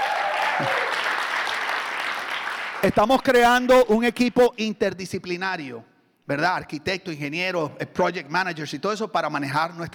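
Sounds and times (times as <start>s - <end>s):
audience applause: 0.0s - 2.9s
speech: 0.6s - 0.8s, 2.8s - 9.9s.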